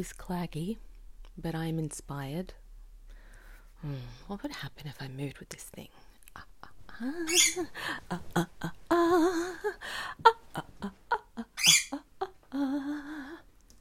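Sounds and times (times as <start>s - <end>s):
speech: 0.0s - 2.6s, 3.8s - 11.0s
cranky pet bird calling: 7.2s - 7.7s, 11.4s - 12.3s.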